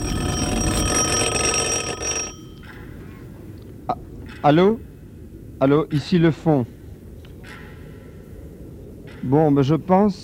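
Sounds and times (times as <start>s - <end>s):
telephone ringing with a brassy electric jangle: 0.0s - 3.0s
speech: 4.4s - 4.9s, 5.6s - 6.8s, 9.2s - 10.2s.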